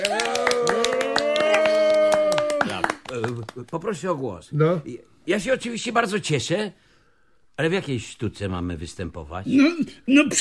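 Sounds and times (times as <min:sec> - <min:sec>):
overlapping voices: 0:00.0 - 0:03.8
scattered hand claps from a group: 0:00.0 - 0:04.0
speech: 0:03.6 - 0:06.9, 0:07.6 - 0:10.3.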